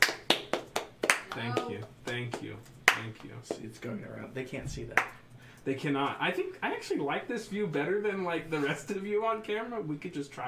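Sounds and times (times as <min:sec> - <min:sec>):
round of applause: 0:00.0 - 0:03.1
speech: 0:01.3 - 0:10.4.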